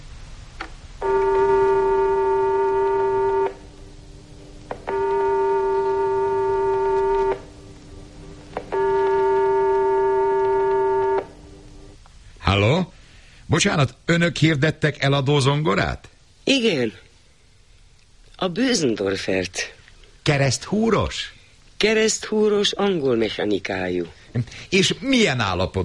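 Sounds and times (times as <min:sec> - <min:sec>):
telephone ringing tones: 0:01.0 - 0:03.6, 0:04.8 - 0:08.1, 0:08.6 - 0:11.6
speech: 0:13.6 - 0:17.0, 0:18.4 - 0:25.8.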